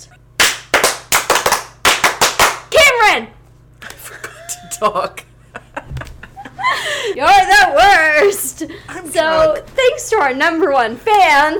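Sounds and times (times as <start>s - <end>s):
loud sharp hand claps: 0.4s - 2.7s
speech: 4.8s - 5.3s, 7.0s - 11.5s.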